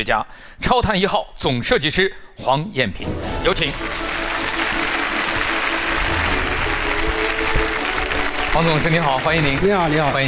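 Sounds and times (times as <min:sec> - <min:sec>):
speech: 0:00.0 - 0:04.2, 0:08.6 - 0:10.2
audience applause greeting a guest speaker onto a stage: 0:03.5 - 0:10.2.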